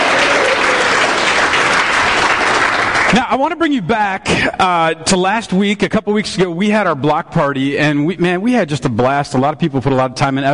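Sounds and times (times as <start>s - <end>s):
audience applause: 0.0s - 3.4s
speech: 3.2s - 10.5s.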